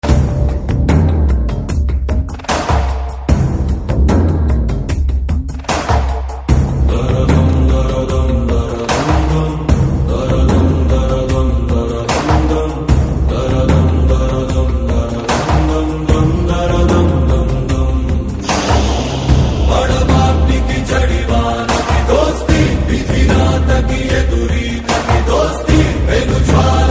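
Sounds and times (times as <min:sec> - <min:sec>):
Hindi background theme music: 0:00.0 - 0:26.8.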